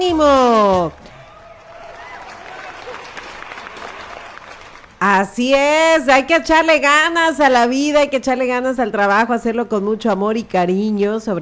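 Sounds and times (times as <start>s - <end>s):
speech: 0.0s - 1.0s, 5.0s - 11.4s
loud applause: 0.6s - 5.0s.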